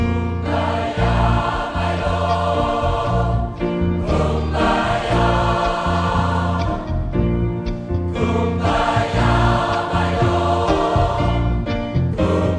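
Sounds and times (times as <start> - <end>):
gospel choir singing: 0.2 - 12.5.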